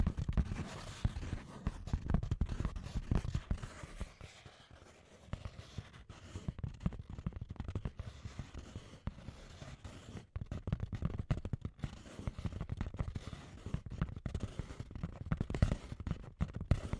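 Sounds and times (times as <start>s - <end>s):
scratchy tapping: 0.0s - 16.9s.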